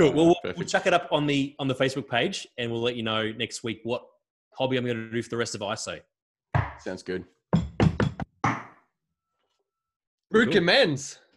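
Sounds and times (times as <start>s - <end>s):
speech: 0.0s - 6.1s, 6.8s - 7.4s, 10.3s - 11.2s
gavel knock: 6.6s - 6.8s, 7.6s - 8.8s.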